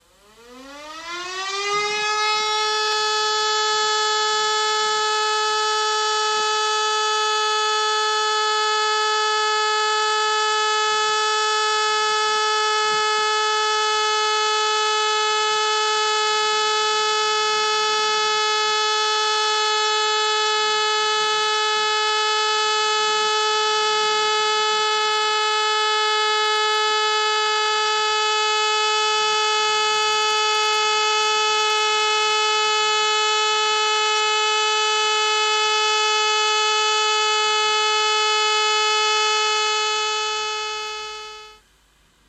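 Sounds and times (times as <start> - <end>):
all-clear siren: 0.0 - 41.6.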